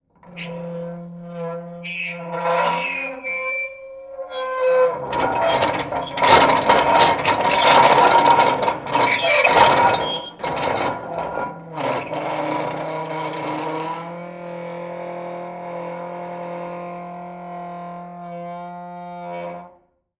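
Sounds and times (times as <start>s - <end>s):
rusty wheel squeaking: 0.2s - 14.0s.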